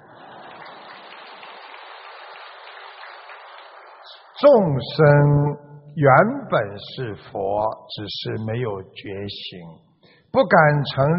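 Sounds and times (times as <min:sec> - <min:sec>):
crowd applause: 0:00.0 - 0:04.8
speech: 0:04.4 - 0:11.1.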